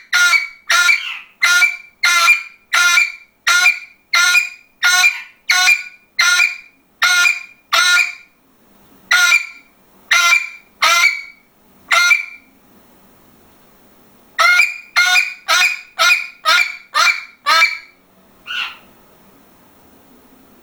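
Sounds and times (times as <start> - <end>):
parrot imitating a dog: 0.0 - 8.2, 9.1 - 12.4, 14.4 - 17.9, 18.5 - 18.9.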